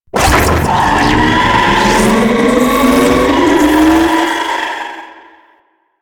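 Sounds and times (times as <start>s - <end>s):
raptor laser barrage charging: 0.1s - 4.2s.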